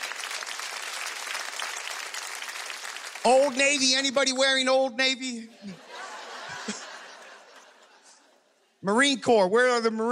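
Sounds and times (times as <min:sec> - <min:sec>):
audience applause: 0:00.0 - 0:04.2
speech: 0:03.2 - 0:05.8, 0:08.8 - 0:10.1
laughter: 0:05.5 - 0:08.6.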